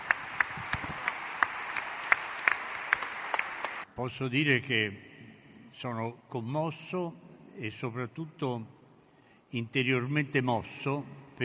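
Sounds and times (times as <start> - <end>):
audience applause: 0.0 - 3.9
speech: 4.0 - 5.1, 5.8 - 8.8, 9.5 - 11.4.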